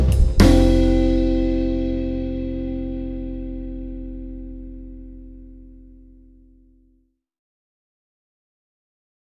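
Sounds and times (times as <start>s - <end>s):
samba music: 0.0s - 3.3s.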